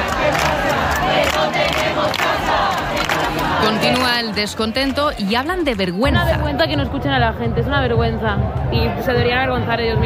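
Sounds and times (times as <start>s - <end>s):
protest crowd chanting: 0.0s - 5.4s
speech: 3.9s - 10.0s.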